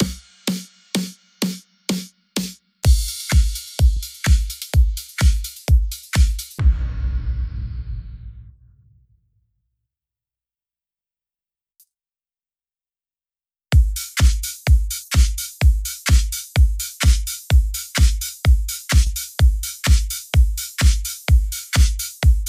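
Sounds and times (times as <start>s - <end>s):
drums: 0.0s - 9.0s, 13.7s - 22.4s.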